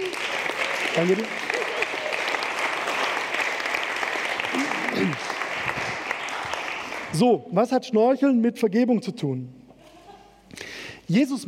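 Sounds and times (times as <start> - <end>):
audience applause: 0.0 - 7.2
speech: 1.0 - 1.4, 7.1 - 9.6, 11.1 - 11.4.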